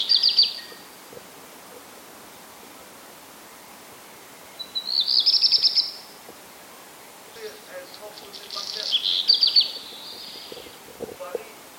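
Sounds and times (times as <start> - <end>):
black redstart: 0.0 - 0.9, 4.5 - 6.1, 7.4 - 10.8.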